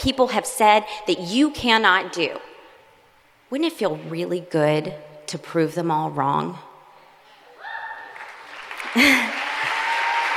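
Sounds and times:
speech: 0:00.0 - 0:02.5, 0:03.5 - 0:06.7, 0:08.9 - 0:09.4
applause: 0:08.1 - 0:10.3.

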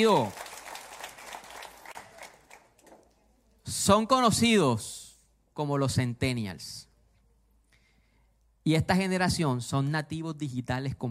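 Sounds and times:
speech: 0:00.0 - 0:00.4, 0:03.7 - 0:05.0, 0:05.6 - 0:06.8, 0:08.7 - 0:11.0
audience applause: 0:00.0 - 0:02.8.

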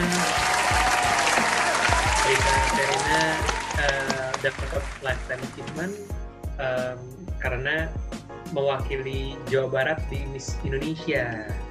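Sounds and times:
audience applause: 0:00.0 - 0:05.3
speech: 0:02.8 - 0:11.6.

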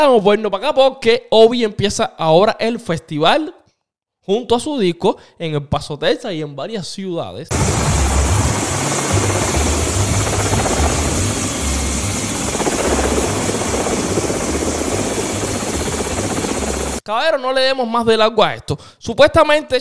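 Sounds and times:
speech: 0:00.0 - 0:03.6, 0:04.2 - 0:08.1, 0:17.1 - 0:19.8
helicopter flying: 0:07.5 - 0:17.0.

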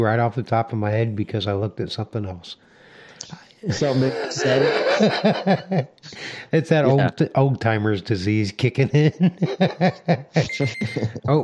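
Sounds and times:
speech: 0:00.0 - 0:11.4
laughter: 0:03.7 - 0:06.0, 0:08.7 - 0:11.4
timer going off: 0:10.4 - 0:11.4.

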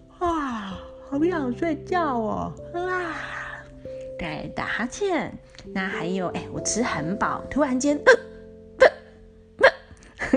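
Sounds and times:
speech: 0:01.1 - 0:03.3, 0:04.2 - 0:08.2
voice imitating hiccups: 0:08.8 - 0:10.0.

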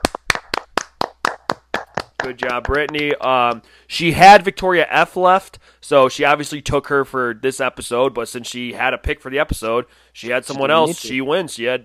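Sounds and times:
hand clapping: 0:00.0 - 0:03.7
speech: 0:02.2 - 0:11.8.

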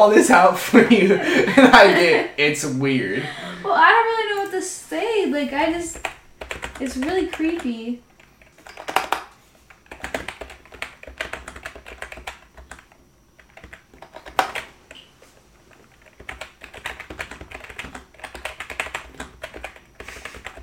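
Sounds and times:
speech: 0:00.0 - 0:06.1, 0:06.8 - 0:08.1
laughter: 0:00.6 - 0:02.4
computer keyboard typing: 0:05.5 - 0:15.1, 0:15.7 - 0:20.6.

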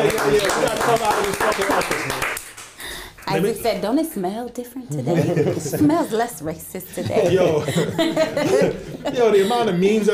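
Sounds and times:
laughter: 0:00.0 - 0:02.2, 0:04.9 - 0:10.1
speech: 0:00.0 - 0:02.4, 0:03.3 - 0:10.1
small round of applause: 0:00.0 - 0:03.3.

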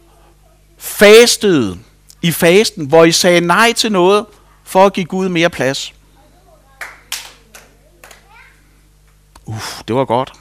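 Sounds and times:
speech: 0:01.0 - 0:06.0, 0:09.5 - 0:10.3
scattered audience hand claps: 0:06.8 - 0:08.3.

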